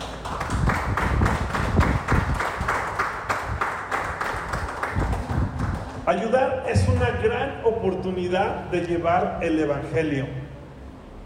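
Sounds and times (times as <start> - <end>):
audience applause: 0.0 - 6.0
speech: 6.1 - 10.4.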